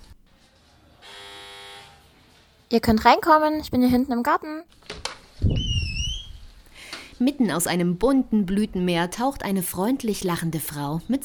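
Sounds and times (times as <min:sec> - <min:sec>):
gate doorbell electric buzz: 0:01.0 - 0:02.1
speech: 0:02.7 - 0:05.8, 0:07.2 - 0:11.2.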